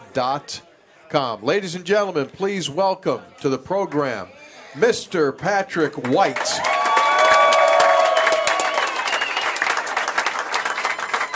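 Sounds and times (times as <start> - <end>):
speech: 0.2 - 6.8
audience applause and cheering for a standing ovation: 6.2 - 11.3.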